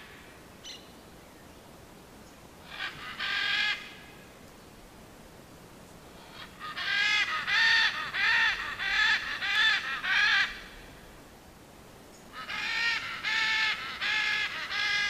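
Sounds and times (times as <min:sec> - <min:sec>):
great green macaw giving harsh raspy squawks to attract other parrots: 0:02.7 - 0:04.0, 0:06.2 - 0:10.7, 0:12.4 - 0:15.0.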